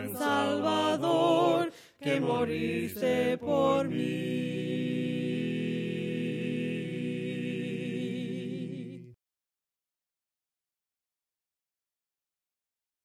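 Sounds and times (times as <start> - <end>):
voices singing hymns a cappella: 0.0 - 9.2.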